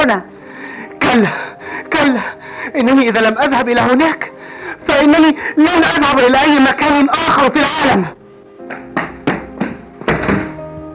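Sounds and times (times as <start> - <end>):
speech: 0.0 - 0.3, 1.1 - 8.8
door slamming: 8.7 - 10.7.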